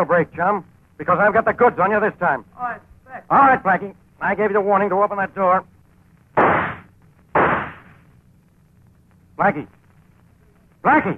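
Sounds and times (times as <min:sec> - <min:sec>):
speech: 0:00.0 - 0:05.7, 0:09.4 - 0:09.8, 0:10.8 - 0:11.1
gunshots: 0:06.4 - 0:08.0.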